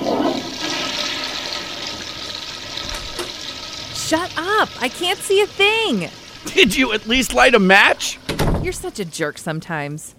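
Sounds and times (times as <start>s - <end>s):
toilet flushing: 0.0s - 10.0s
speech: 4.1s - 10.1s.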